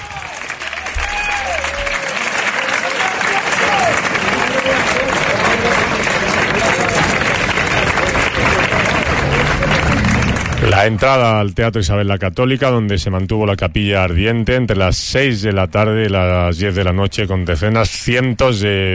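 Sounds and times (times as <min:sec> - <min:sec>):
rhythmic hand-clapping palmas at coffin's arrival: 0:00.0 - 0:11.0
speech: 0:10.8 - 0:18.9.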